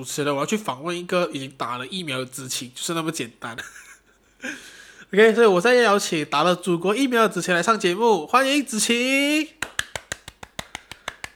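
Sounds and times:
speech: 0:00.0 - 0:09.7
hand clapping: 0:09.6 - 0:11.3.

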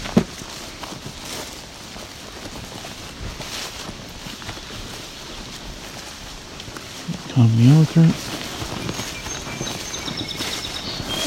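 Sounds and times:
thudding hoof-like footsteps: 0:00.0 - 0:11.2
song sparrow singing: 0:07.2 - 0:11.2
speech: 0:07.4 - 0:08.3.

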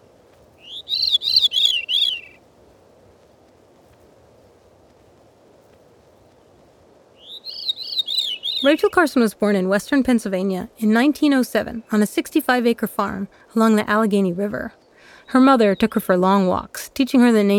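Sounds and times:
veery song with descending spirals: 0:00.4 - 0:02.4, 0:06.5 - 0:17.5
speech: 0:08.6 - 0:17.5.

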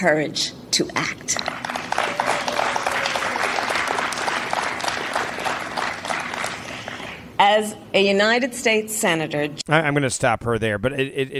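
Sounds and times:
speech: 0:00.0 - 0:01.7, 0:07.4 - 0:11.3
rally crowd applauding: 0:01.3 - 0:07.3
woman cheering: 0:01.8 - 0:04.4.

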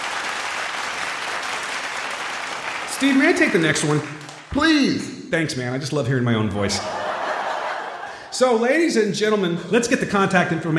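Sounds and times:
applause: 0:00.0 - 0:04.6
speech: 0:03.0 - 0:07.0, 0:08.3 - 0:10.7
laughter: 0:06.6 - 0:08.6.

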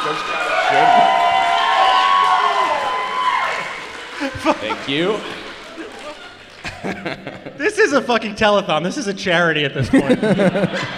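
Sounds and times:
crowd cheering and whooping: 0:00.0 - 0:06.6
crowd applause: 0:00.0 - 0:07.5
laughter: 0:04.0 - 0:08.1, 0:09.8 - 0:10.9
speech: 0:04.6 - 0:05.4, 0:06.8 - 0:10.9.

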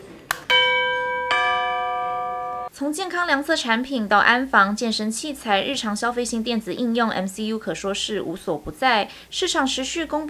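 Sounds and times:
wireless doorbell chiming: 0:00.5 - 0:02.7
speech: 0:02.8 - 0:10.2.

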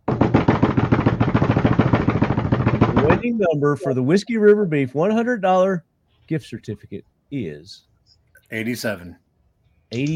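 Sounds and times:
drum roll: 0:00.0 - 0:03.3
speech: 0:03.3 - 0:07.9, 0:08.5 - 0:09.2, 0:09.9 - 0:10.1.

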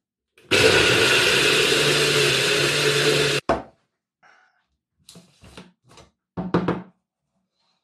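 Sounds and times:
blender making a green smoothie: 0:00.4 - 0:03.4.

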